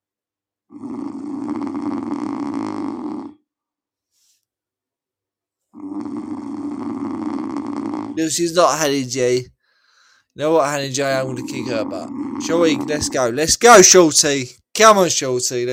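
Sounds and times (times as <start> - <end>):
person snoring: 0.7 - 3.5, 5.7 - 8.4, 11.0 - 13.6
speech: 8.2 - 9.5, 10.4 - 15.7.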